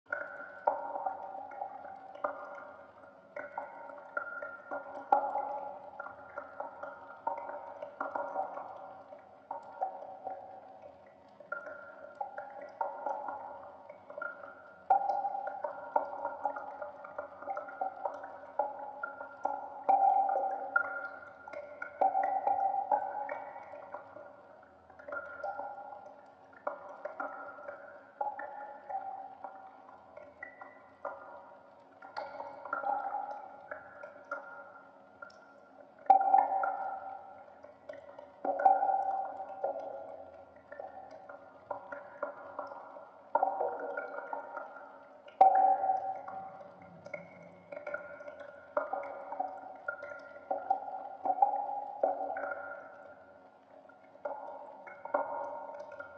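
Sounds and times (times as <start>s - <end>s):
water dripping in a cave: 0.0s - 56.1s.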